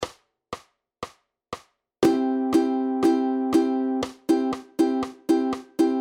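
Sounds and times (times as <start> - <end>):
syncopated rhythm in 2 bars: 0.0 - 6.0.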